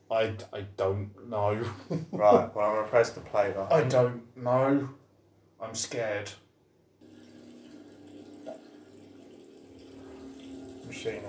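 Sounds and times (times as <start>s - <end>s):
speech: 0.1s - 5.0s, 5.6s - 6.4s, 10.9s - 11.2s
hands being washed under running tap water: 7.0s - 11.2s.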